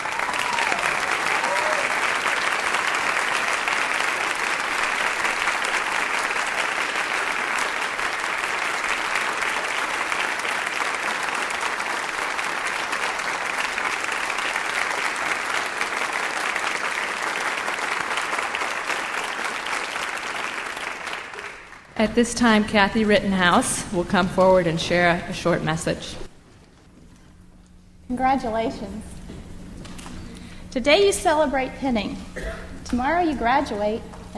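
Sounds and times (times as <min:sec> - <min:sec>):
audience applause: 0:00.0 - 0:22.0
speech: 0:22.0 - 0:26.2, 0:28.2 - 0:29.2, 0:30.8 - 0:32.3, 0:32.9 - 0:34.3.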